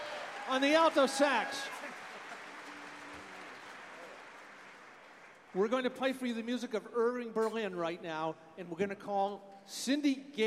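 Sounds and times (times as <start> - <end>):
audience applause: 0.0 - 5.7
speech: 0.5 - 1.8, 5.5 - 10.4.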